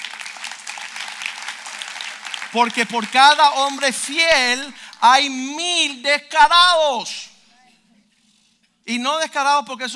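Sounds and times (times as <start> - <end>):
audience applause: 0.0 - 3.9
speech: 2.5 - 7.3, 8.9 - 9.9.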